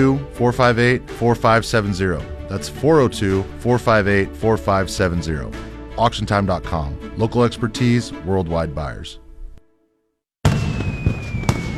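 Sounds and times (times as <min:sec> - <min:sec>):
speech: 0:00.0 - 0:09.2
fireworks bursting at an Independence Day lakeside show: 0:10.4 - 0:11.7.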